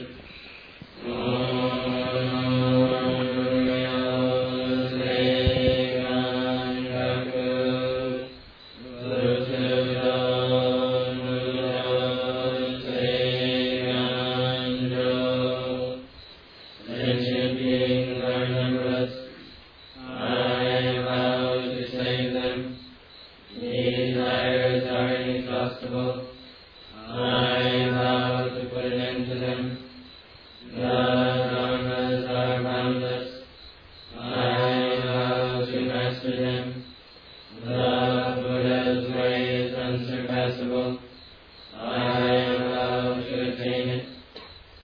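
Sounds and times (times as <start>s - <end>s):
chanting: 0.0s - 44.8s.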